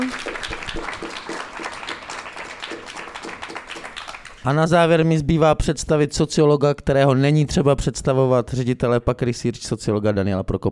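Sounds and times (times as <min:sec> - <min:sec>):
audience applause: 0:00.0 - 0:04.6
speech: 0:04.4 - 0:10.7.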